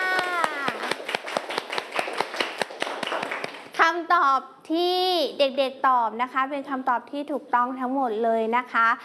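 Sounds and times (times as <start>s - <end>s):
children clapping for themselves: 0.0s - 3.8s
speech: 4.2s - 9.0s.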